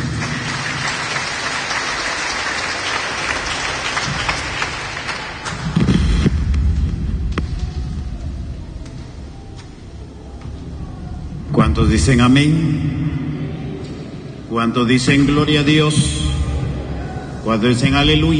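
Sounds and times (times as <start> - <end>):
audience applauding: 0.0 - 6.0
low rumbling: 3.6 - 18.3
speech: 11.9 - 13.2, 14.5 - 16.3, 17.4 - 18.3.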